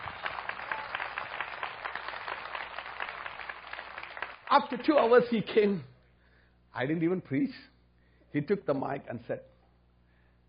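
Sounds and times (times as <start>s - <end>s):
audience clapping in praise: 0.0s - 5.4s
speech: 4.5s - 5.9s, 6.8s - 7.7s, 8.3s - 9.5s.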